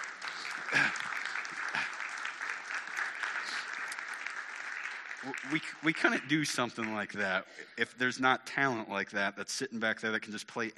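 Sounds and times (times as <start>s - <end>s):
church audience applause: 0.0s - 7.5s
speech: 5.2s - 10.7s.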